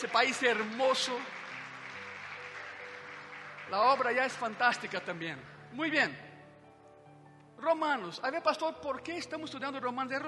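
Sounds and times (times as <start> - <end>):
speech: 0.0 - 1.4, 3.7 - 6.2, 7.6 - 10.2
audience applauding: 0.0 - 5.7.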